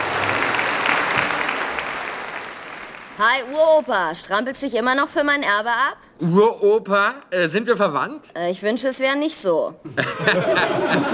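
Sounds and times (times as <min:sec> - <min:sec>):
audience applause greeting a surprise guest on a stage show: 0:00.0 - 0:03.7
speech: 0:03.2 - 0:11.1
laughter: 0:09.9 - 0:11.1.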